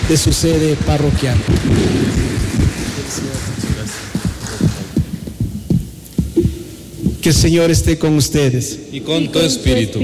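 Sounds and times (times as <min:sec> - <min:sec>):
audience applause: 0:00.0 - 0:05.5
speech: 0:00.1 - 0:03.5, 0:07.2 - 0:10.0.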